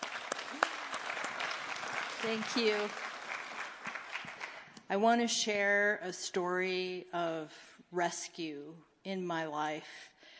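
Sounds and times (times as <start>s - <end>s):
audience applauding: 0.0s - 4.7s
speech: 2.2s - 3.1s, 4.9s - 10.1s.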